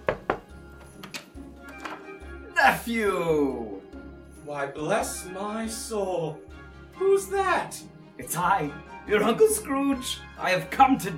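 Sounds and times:
knocking on a door: 0:00.0 - 0:00.5
speech: 0:02.7 - 0:03.8, 0:04.5 - 0:11.1.

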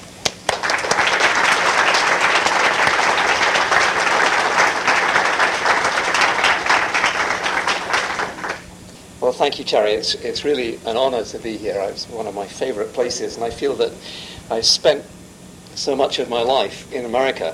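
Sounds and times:
audience at Rare Book School applauding a lecture speaker: 0:00.2 - 0:08.6
speech: 0:09.3 - 0:15.2, 0:15.8 - 0:17.5.

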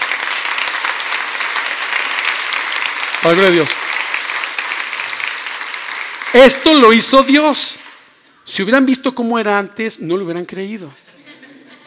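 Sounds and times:
audience applause: 0:00.0 - 0:08.0
speech: 0:03.2 - 0:03.8, 0:06.3 - 0:07.8, 0:08.5 - 0:11.0
laughter: 0:11.0 - 0:11.8.

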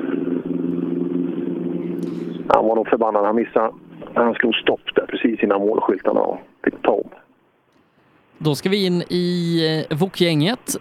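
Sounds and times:
Opel Ascona D rally car engine roaring past on a rally stage: 0:00.0 - 0:04.3
speech: 0:02.5 - 0:07.2, 0:08.4 - 0:10.7.

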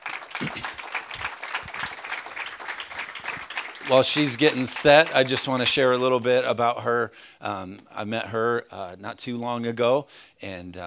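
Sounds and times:
audience applause welcoming a speaker to the stage: 0:00.0 - 0:06.0
speech: 0:03.9 - 0:10.8.

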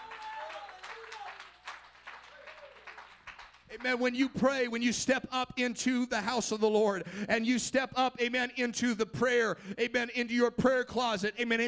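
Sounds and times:
audience clapping: 0:00.0 - 0:04.5
speech: 0:03.7 - 0:11.6.

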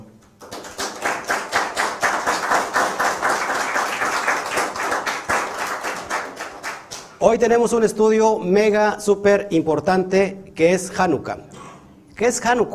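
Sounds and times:
audience applause: 0:00.4 - 0:07.1
speech: 0:07.2 - 0:11.5, 0:12.2 - 0:12.7.

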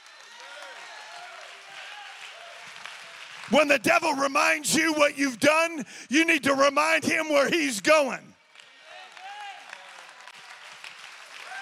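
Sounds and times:
audience applause: 0:00.0 - 0:04.9, 0:08.4 - 0:11.5
speech: 0:03.5 - 0:08.3
voices calling out and cheering: 0:03.5 - 0:08.3.

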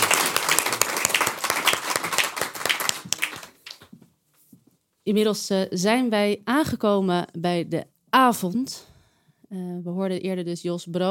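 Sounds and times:
crowd applauding: 0:00.0 - 0:03.9
speech: 0:05.1 - 0:08.9, 0:09.5 - 0:11.0.

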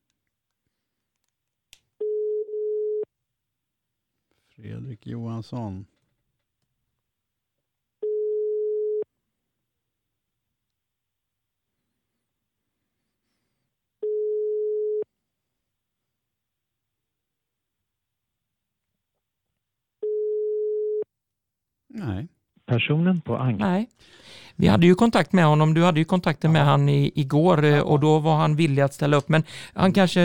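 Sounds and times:
telephone ringing tone on a call: 0:02.0 - 0:03.1, 0:08.0 - 0:09.1, 0:14.0 - 0:15.1, 0:20.0 - 0:21.1
speech: 0:04.7 - 0:05.9, 0:22.9 - 0:30.2.

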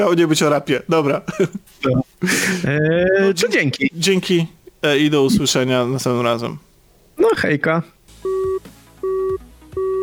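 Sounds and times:
speech: 0:00.0 - 0:06.7, 0:07.3 - 0:08.0
telephone busy tone after a call ends: 0:08.2 - 0:10.0.

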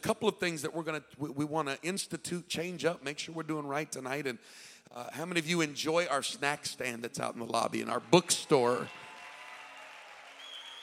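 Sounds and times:
speech: 0:00.0 - 0:09.0
audience clapping: 0:07.7 - 0:10.8.

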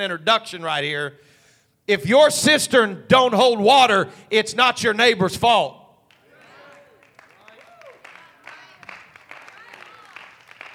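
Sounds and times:
speech: 0:00.0 - 0:05.8
audience clapping: 0:06.0 - 0:10.7.

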